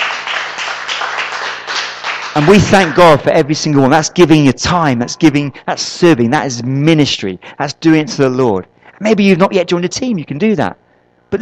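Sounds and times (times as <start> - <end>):
audience clapping: 0.0 - 4.0
speech: 2.4 - 11.3.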